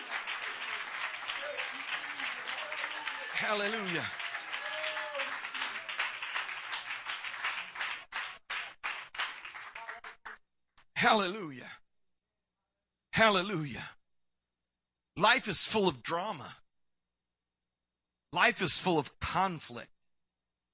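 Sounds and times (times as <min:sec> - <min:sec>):
audience clapping hands: 0:00.0 - 0:10.4
speech: 0:03.4 - 0:04.2, 0:11.0 - 0:11.8, 0:13.2 - 0:14.0, 0:15.2 - 0:16.6, 0:18.3 - 0:20.0.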